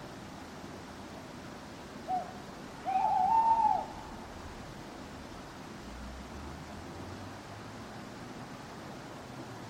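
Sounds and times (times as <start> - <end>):
faint background hiss: 0.0 - 9.6
owl hooting: 2.1 - 4.2.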